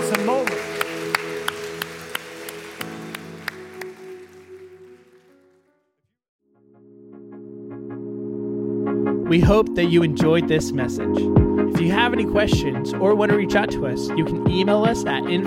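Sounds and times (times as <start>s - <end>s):
audience applause: 0.0s - 5.6s
speech: 9.3s - 15.4s.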